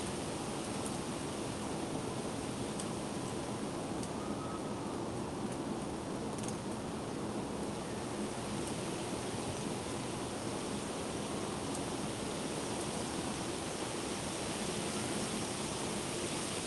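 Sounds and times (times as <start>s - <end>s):
trees and foliage rustling in wind gusts: 0.0s - 16.6s.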